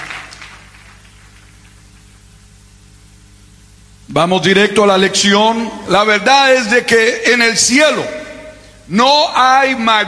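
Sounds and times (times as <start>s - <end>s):
audience applause: 0.0s - 1.7s
speech: 4.1s - 8.2s, 8.9s - 10.0s.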